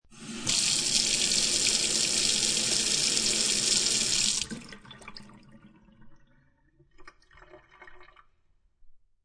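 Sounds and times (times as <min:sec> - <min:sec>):
water flowing down kitchen sink drain: 0:00.1 - 0:08.5
kitchen sink tap turning on: 0:00.2 - 0:04.8.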